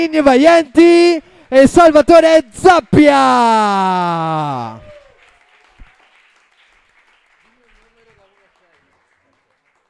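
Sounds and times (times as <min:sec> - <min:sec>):
speech: 0:00.0 - 0:04.8
audience applause: 0:04.4 - 0:09.8.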